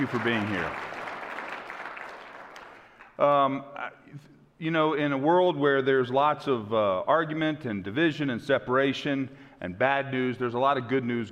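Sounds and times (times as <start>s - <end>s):
speech: 0.0s - 1.0s, 3.2s - 11.3s
church audience round of applause: 0.0s - 3.1s.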